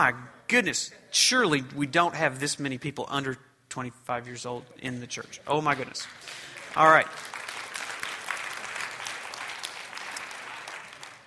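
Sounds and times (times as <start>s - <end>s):
speech: 0.0s - 7.3s
audience clapping: 5.1s - 11.2s.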